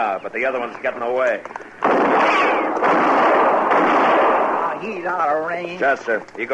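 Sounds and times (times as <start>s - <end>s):
speech: 0.0s - 3.1s, 4.8s - 6.5s
gunshots: 1.8s - 5.4s.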